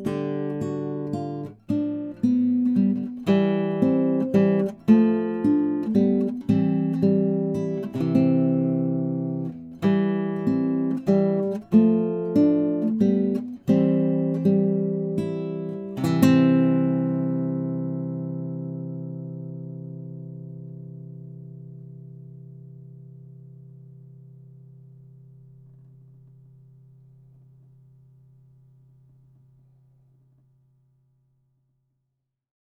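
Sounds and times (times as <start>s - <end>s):
Yamaha GC-32C guitar: 0.0s - 29.8s.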